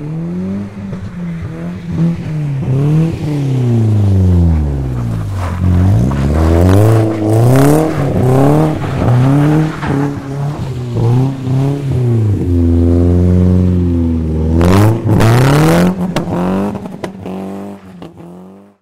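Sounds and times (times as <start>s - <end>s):
BMW engine revving in carpark: 0.0s - 18.8s
BMW tyres spinning in burnout on snow in carpark: 0.1s - 18.6s
BMW exhaust exploding during burnout on snow in carpark: 1.5s - 18.3s.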